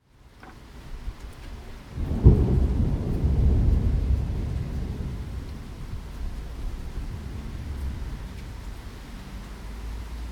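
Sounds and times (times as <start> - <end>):
thunder: 1.9 - 9.4.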